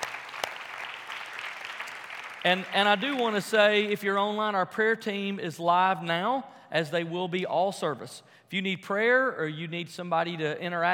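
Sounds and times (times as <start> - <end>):
church congregation applause: 0.0 - 4.0
speech: 2.4 - 10.9.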